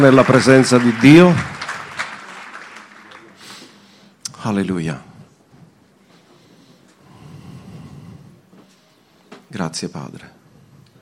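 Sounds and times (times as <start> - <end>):
speech: 0.0 - 1.5, 4.4 - 5.1, 9.5 - 10.4
audience applause: 0.0 - 3.8.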